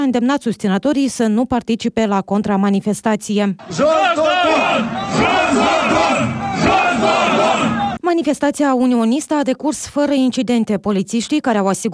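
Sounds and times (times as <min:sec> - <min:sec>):
speech: 0:00.0 - 0:05.8, 0:08.1 - 0:11.9
crowd chanting a slogan at a street rally: 0:03.6 - 0:08.0.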